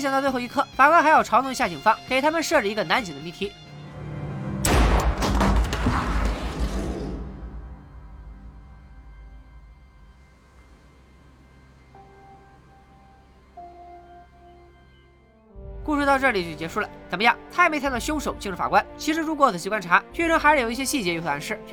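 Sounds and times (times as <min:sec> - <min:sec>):
speech: 0:00.0 - 0:03.7, 0:16.2 - 0:21.7
pistol gunshot fired by a judge at himself: 0:04.7 - 0:06.6
faint steady tones: 0:07.9 - 0:19.4.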